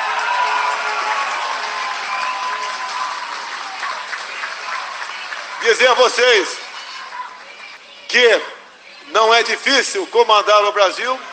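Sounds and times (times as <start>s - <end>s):
warm applause from the crowd: 0.0s - 7.9s
speech: 5.6s - 6.6s, 8.1s - 8.5s, 9.1s - 11.3s.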